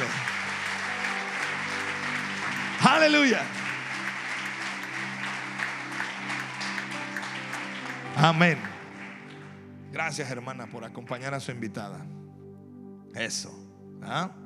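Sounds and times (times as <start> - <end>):
audience applause: 0.0 - 9.6
speech: 2.9 - 3.6, 8.2 - 8.7, 9.9 - 12.2, 13.1 - 14.4.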